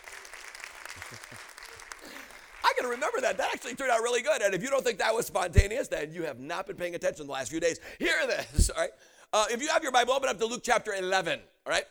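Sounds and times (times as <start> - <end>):
audience clapping hands: 0.0 - 4.0
speech: 1.1 - 11.8.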